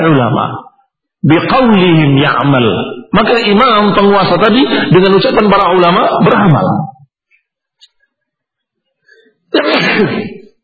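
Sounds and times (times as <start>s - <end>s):
speech: 0.0s - 6.9s, 9.5s - 10.4s
loud forceful sneeze: 9.5s - 10.5s.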